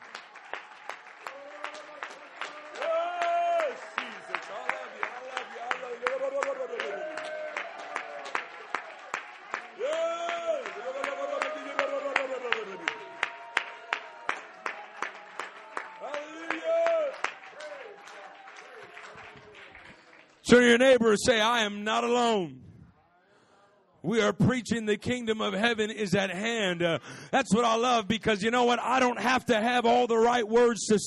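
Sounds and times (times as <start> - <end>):
audience clapping: 0.0 - 21.2
audience shouting: 1.2 - 19.0
speech: 20.5 - 22.6, 24.1 - 31.0.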